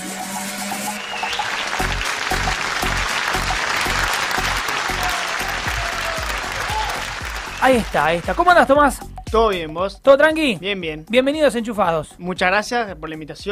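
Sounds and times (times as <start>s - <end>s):
crowd applauding: 0.9s - 8.8s
low rhythmic thumps: 1.0s - 11.6s
speech: 7.6s - 13.5s.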